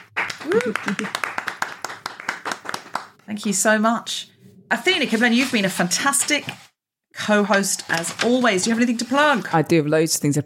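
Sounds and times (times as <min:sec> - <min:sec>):
audience applause: 0:00.0 - 0:03.2
speech: 0:00.4 - 0:01.3, 0:03.3 - 0:06.6, 0:07.2 - 0:10.4.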